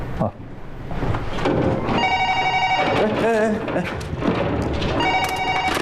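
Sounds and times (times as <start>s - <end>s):
speech: 0.2s - 0.4s, 3.3s - 4.9s
old-style telephone bell ringing: 2.0s - 3.2s, 5.0s - 5.8s.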